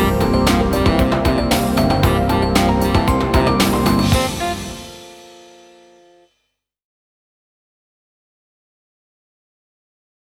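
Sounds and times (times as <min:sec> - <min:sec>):
karaoke backing track: 0:00.0 - 0:05.6.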